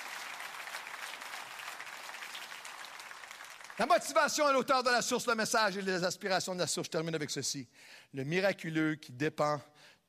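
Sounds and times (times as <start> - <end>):
audience applauding: 0.0 - 4.6
speech: 3.8 - 10.0.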